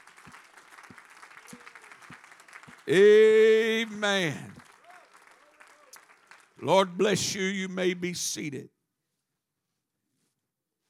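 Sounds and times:
audience clapping hands in praise: 0.0s - 8.1s
speech: 2.9s - 4.5s, 6.6s - 8.8s.

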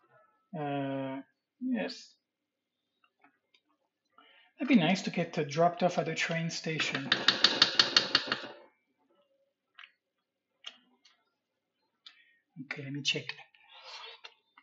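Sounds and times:
speech: 0.5s - 1.0s, 1.7s - 2.2s, 4.6s - 7.4s, 12.8s - 13.5s
wooden spoon tapping and beating: 6.9s - 8.5s.

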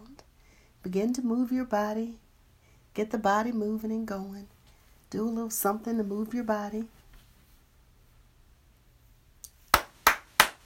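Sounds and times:
speech: 0.8s - 2.2s, 3.0s - 4.5s, 5.1s - 7.0s
people clapping: 9.7s - 10.6s.

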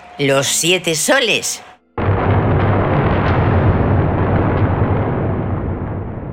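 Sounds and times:
speech: 0.2s - 1.7s
thunder rumble: 2.0s - 6.3s.

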